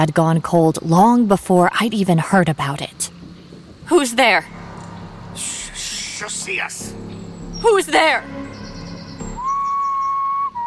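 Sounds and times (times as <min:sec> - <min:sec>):
speech: 0:00.0 - 0:03.2, 0:03.9 - 0:04.6, 0:06.2 - 0:08.6
sustained whistle: 0:06.1 - 0:10.6.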